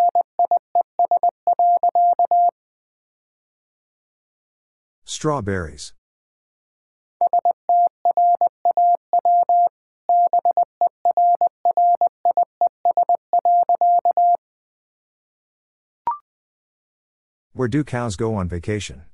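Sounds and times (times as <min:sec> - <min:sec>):
Morse code beeps at 20 wpm: 0:00.0 - 0:02.5, 0:07.2 - 0:14.4
speech: 0:05.2 - 0:06.0, 0:17.6 - 0:19.1.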